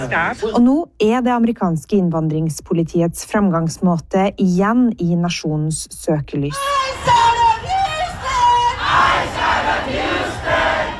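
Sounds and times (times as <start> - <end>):
speech: 0.0 - 7.3
protesters shouting in Houston: 6.9 - 10.9.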